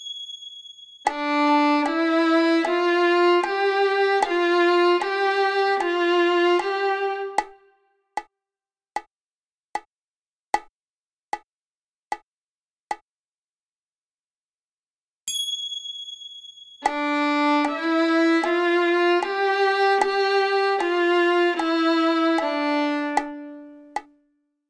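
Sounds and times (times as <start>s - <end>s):
violin D string: 1.1s - 7.7s, 16.8s - 24.1s.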